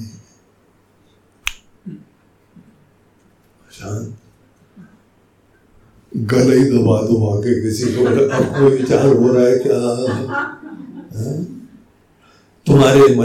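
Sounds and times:
finger snap: 0:01.4 - 0:01.7
speech: 0:03.8 - 0:04.2, 0:06.2 - 0:11.5, 0:12.7 - 0:13.2
laughter: 0:07.7 - 0:11.6.

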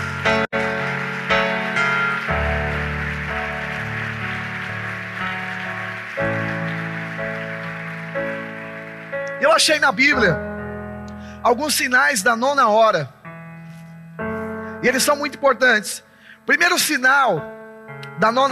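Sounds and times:
audience applause: 0:00.0 - 0:10.2
speech: 0:09.6 - 0:10.5, 0:11.4 - 0:13.2, 0:14.8 - 0:17.6, 0:18.2 - 0:18.4.

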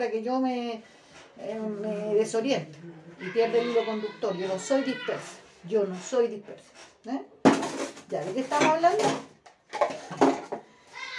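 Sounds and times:
speech: 0:00.0 - 0:07.3, 0:08.1 - 0:10.2
washing dishes: 0:06.6 - 0:11.1.

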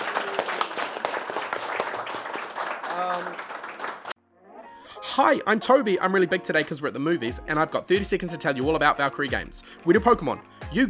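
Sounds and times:
audience round of applause: 0:00.0 - 0:04.2
speech: 0:05.2 - 0:10.8.

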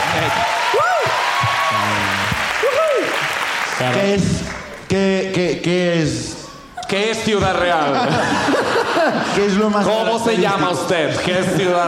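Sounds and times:
audience clapping: 0:00.0 - 0:04.9
speech: 0:03.8 - 0:11.8
laughter: 0:06.6 - 0:09.8.

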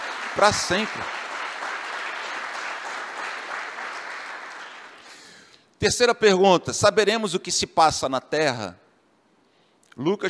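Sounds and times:
audience applauding: 0:00.0 - 0:05.3
speech: 0:00.4 - 0:01.2, 0:05.8 - 0:08.8, 0:10.0 - 0:10.2.

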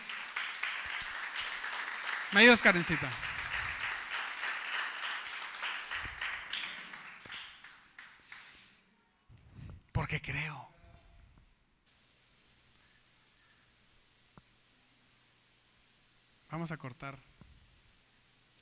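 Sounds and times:
audience applause: 0:00.0 - 0:08.6
speech: 0:02.3 - 0:03.2, 0:16.6 - 0:17.4.

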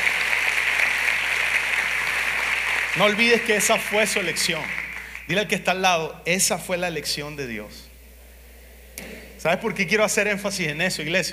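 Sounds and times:
loud applause from audience: 0:00.0 - 0:05.3
speech: 0:03.0 - 0:07.9, 0:09.4 - 0:11.3.

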